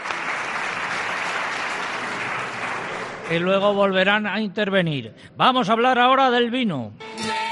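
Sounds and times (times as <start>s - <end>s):
audience applause for a choir: 0.0s - 3.5s
speech: 3.3s - 7.4s.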